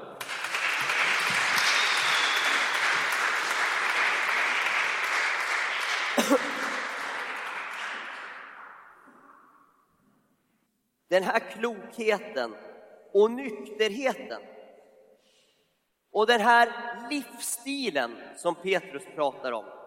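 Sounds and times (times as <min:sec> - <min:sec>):
audience applause: 0:00.0 - 0:08.9
speech: 0:06.3 - 0:06.5, 0:11.1 - 0:14.6, 0:16.2 - 0:19.8.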